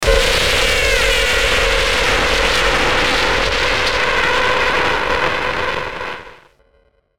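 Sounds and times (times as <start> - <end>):
distorted warbling fizzling hit burst: 0.0 - 6.5.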